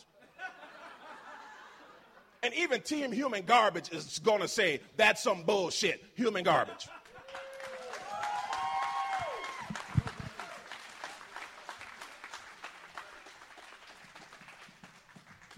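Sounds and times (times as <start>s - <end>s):
laughter: 0.1s - 2.4s, 6.4s - 7.6s
speech: 2.4s - 7.0s
audience applause: 7.0s - 15.5s
whoops and cheers: 7.1s - 10.9s.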